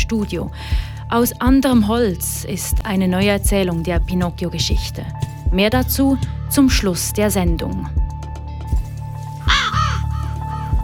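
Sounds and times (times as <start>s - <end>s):
speech: 0.1s - 8.1s
raven cawing: 9.4s - 10.8s.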